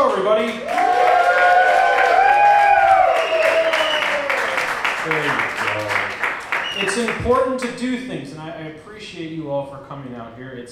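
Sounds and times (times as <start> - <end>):
live comedy audience in Chicago applauding: 0.0 - 7.5
live comedy audience in Chicago cheering and whooping: 0.6 - 5.3
speech: 6.8 - 10.6.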